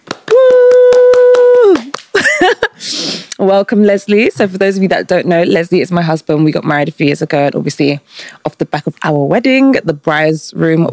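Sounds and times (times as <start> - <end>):
round of applause: 0.0 - 2.2
speech: 3.4 - 10.9.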